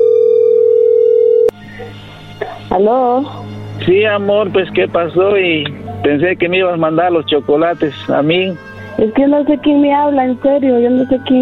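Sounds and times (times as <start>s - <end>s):
steady loud single-pitch telephone tone: 0.0s - 1.6s
speech: 2.7s - 11.4s.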